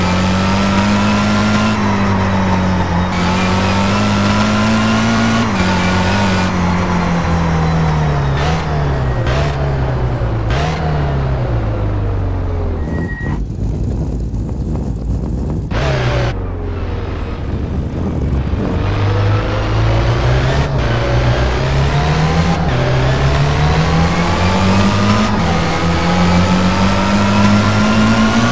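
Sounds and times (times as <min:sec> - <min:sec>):
BMW M3 E46 GTR race car engine: 0:00.0 - 0:28.5.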